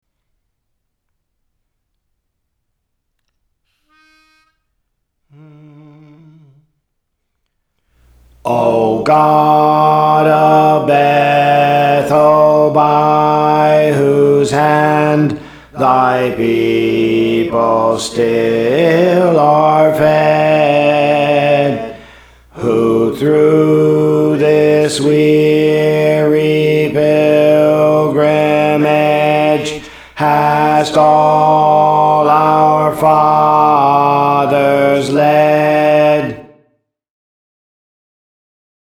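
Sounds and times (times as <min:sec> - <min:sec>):
alto voice singing songs: 0:08.1 - 0:36.6.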